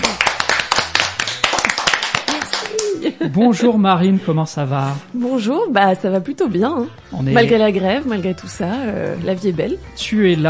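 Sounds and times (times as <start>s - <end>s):
applause: 0.0s - 3.0s
speech: 3.2s - 10.4s.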